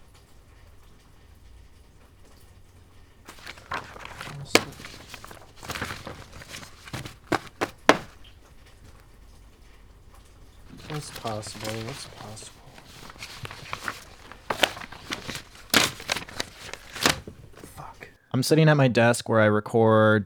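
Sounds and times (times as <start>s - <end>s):
papers rustling in a desk drawer: 3.3s - 9.1s, 10.4s - 18.2s
speech: 11.2s - 12.6s, 18.4s - 20.2s.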